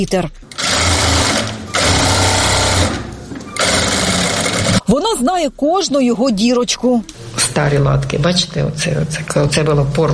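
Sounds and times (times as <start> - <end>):
speech: 0.0 - 0.5, 4.9 - 10.1
sewing machine stitching a flag: 0.5 - 4.8.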